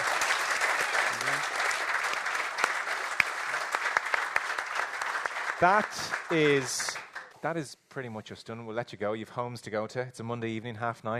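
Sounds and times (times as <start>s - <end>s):
crowd applauding: 0.0s - 7.4s
speech: 5.6s - 11.1s.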